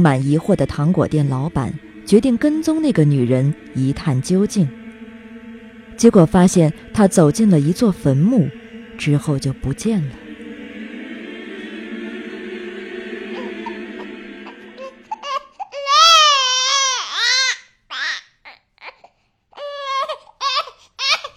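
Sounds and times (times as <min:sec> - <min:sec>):
speech: 0:00.0 - 0:04.8, 0:06.0 - 0:10.2
steady low hum: 0:00.0 - 0:15.6
infant crying with high wavering wails: 0:14.5 - 0:21.3.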